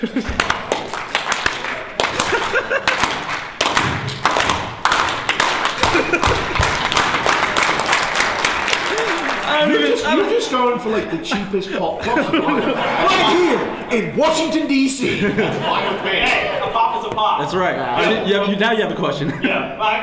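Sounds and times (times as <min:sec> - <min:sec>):
speech: 0:00.0 - 0:00.7, 0:09.6 - 0:20.0
laughter: 0:00.0 - 0:00.8, 0:01.9 - 0:03.3, 0:05.7 - 0:07.6, 0:08.3 - 0:14.0, 0:14.9 - 0:17.1, 0:19.1 - 0:19.8
audience slow clap: 0:00.0 - 0:09.8.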